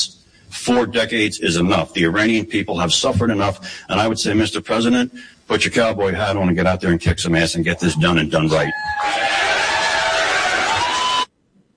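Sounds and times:
speech: 0.7 - 9.4
crowd cheering wildly: 8.5 - 11.3.

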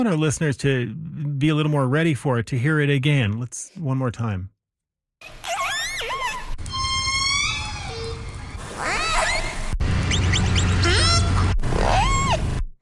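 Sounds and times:
speech: 0.0 - 4.5, 5.2 - 5.5
killer whale discrete calls from different orcas: 5.7 - 12.5.

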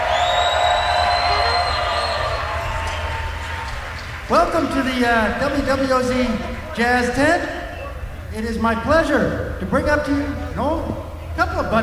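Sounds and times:
shrill whistles from the crowd: 0.0 - 4.4
crowd cheering in the WWOZ Jazz Tent at a live jazz event: 0.0 - 8.8
speech: 4.3 - 7.6, 8.3 - 11.8.

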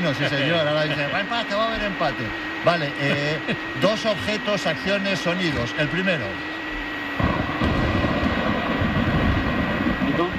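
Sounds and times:
laughter: 0.0 - 1.5, 3.0 - 4.0
speech: 0.0 - 6.6
thunderstorm: 7.2 - 10.3.

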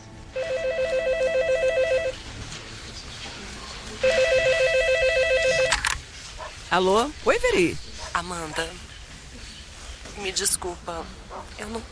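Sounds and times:
telephone ringing: 0.3 - 2.2, 4.0 - 5.8
speech: 6.7 - 8.9, 10.2 - 11.9.

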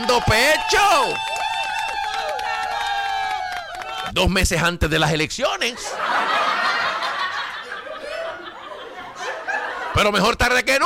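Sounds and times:
speech: 0.0 - 1.4, 4.2 - 6.7, 10.0 - 10.8
excited shouting voices: 0.0 - 4.1
audience clapping for a congresswoman: 0.0 - 4.4
laughter: 5.8 - 10.4.

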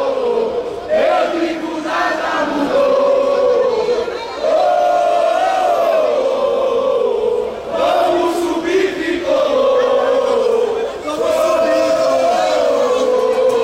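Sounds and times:
football supporters chanting on stadium stairs: 0.0 - 13.6.

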